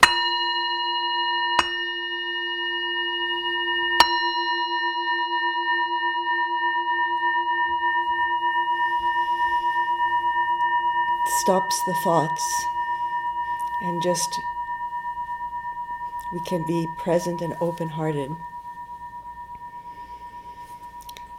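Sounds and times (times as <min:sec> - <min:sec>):
meditation bell ringing: 0:00.0 - 0:21.3
speech: 0:11.4 - 0:12.8, 0:13.8 - 0:14.5, 0:16.3 - 0:18.5.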